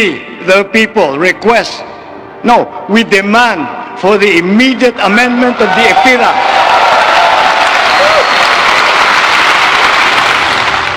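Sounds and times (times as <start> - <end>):
speech: 0.0 - 6.7
crowd applause: 5.4 - 10.9.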